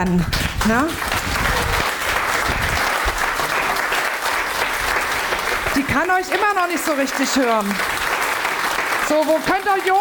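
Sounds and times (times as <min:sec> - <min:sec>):
speech: 0:00.0 - 0:01.2, 0:05.8 - 0:08.0, 0:09.1 - 0:09.9
audience clapping: 0:00.0 - 0:09.9.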